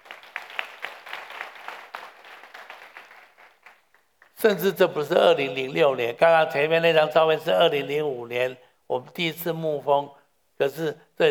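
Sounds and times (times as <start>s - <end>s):
audience applause: 0.0s - 4.3s
speech: 4.4s - 11.2s.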